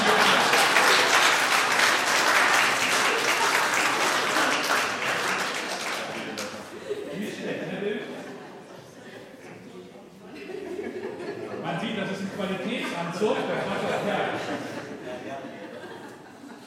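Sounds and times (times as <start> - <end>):
laughter: 0.0 - 1.4, 2.8 - 9.6, 10.2 - 16.6
audience clapping: 0.0 - 6.7.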